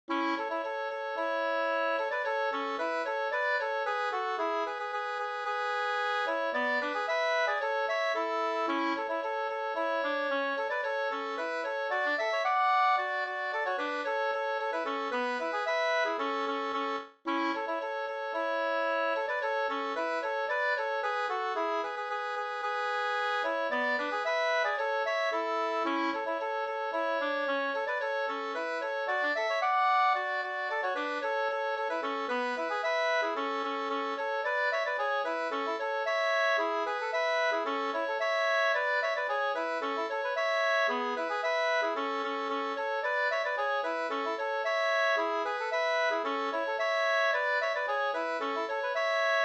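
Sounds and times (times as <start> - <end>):
polka music: 0.1 - 49.4.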